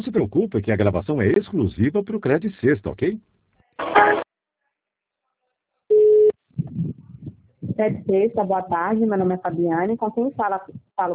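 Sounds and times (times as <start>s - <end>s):
speech: 0.0s - 4.1s, 7.8s - 11.1s
telephone line tone while a call is transferred to an agent: 5.9s - 6.3s.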